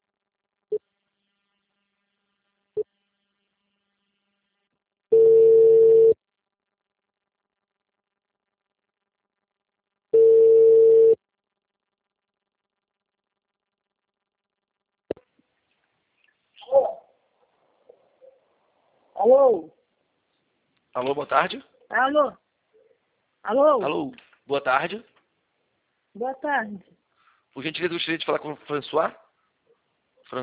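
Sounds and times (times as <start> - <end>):
telephone ringback tone while a call connects: 5.1 - 6.2, 10.2 - 11.2
speech: 19.2 - 19.8, 21.0 - 22.4, 23.4 - 25.1, 26.2 - 27.0, 27.6 - 29.2.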